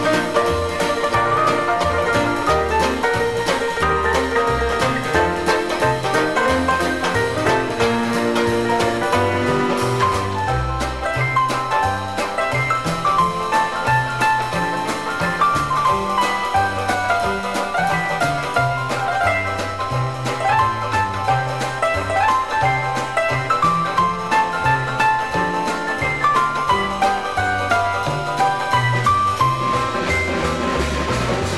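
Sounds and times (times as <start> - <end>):
band playing: 0.0 - 31.5
banjo: 0.0 - 31.5
rinky-tink piano: 0.0 - 31.5.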